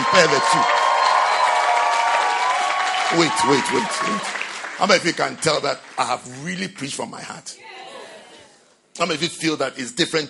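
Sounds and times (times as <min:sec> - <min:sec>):
audience clapping: 0:00.0 - 0:06.6
speech: 0:00.2 - 0:00.8, 0:03.1 - 0:07.8, 0:09.0 - 0:10.2.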